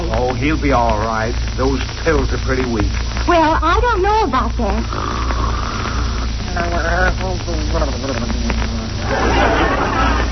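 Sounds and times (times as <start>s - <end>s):
low hum: 0.0s - 10.3s
speech: 0.4s - 5.4s, 6.6s - 10.3s
loud theatrical snoring: 4.8s - 6.4s
laughter: 9.0s - 10.3s.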